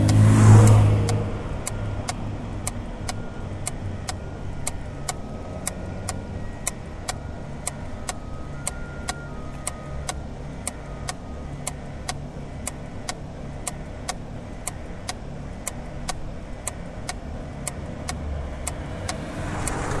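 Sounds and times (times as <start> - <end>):
acoustic traffic light signal at a stop: 0.0 - 19.9.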